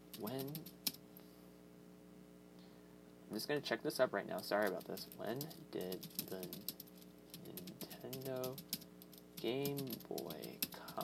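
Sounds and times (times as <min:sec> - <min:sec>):
Bluetooth computer keyboard clicks: 0:00.1 - 0:01.0, 0:04.6 - 0:11.0
speech: 0:00.2 - 0:00.8, 0:03.3 - 0:06.8, 0:07.4 - 0:08.7, 0:09.4 - 0:11.0.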